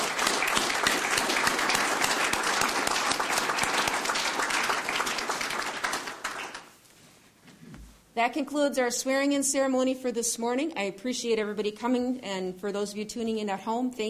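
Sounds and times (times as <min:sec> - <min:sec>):
crowd applauding: 0:00.0 - 0:06.7
speech: 0:08.2 - 0:14.0.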